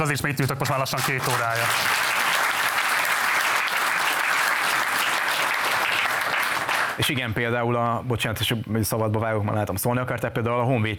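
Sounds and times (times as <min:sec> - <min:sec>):
speech: 0:00.0 - 0:02.2, 0:07.0 - 0:10.9
audience applause: 0:00.9 - 0:07.0.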